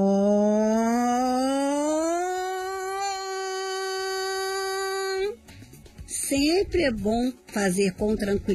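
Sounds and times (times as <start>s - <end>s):
voice gliding on vowel O like siren: 0.0s - 5.4s
speech: 6.3s - 8.5s.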